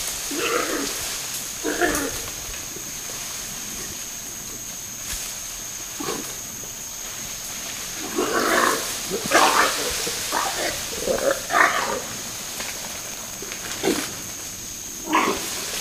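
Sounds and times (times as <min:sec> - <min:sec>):
roar: 0:00.2 - 0:02.3, 0:05.9 - 0:06.4, 0:07.9 - 0:12.3, 0:15.0 - 0:15.6.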